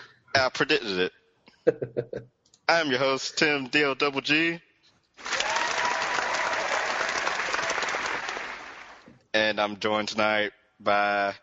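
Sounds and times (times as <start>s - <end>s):
speech: 0.4s - 5.4s, 9.3s - 11.4s
audience clapping: 5.2s - 9.1s.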